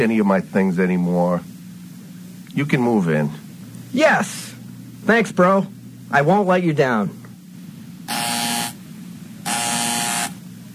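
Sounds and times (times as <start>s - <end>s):
speech: 0.0s - 1.5s, 2.5s - 7.2s
electric door buzzer: 8.1s - 8.8s, 9.4s - 10.4s.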